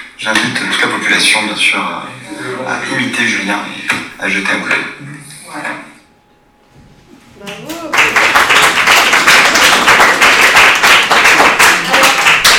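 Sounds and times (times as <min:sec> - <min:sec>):
speech: 0:00.3 - 0:05.9
audience applause: 0:07.6 - 0:12.5.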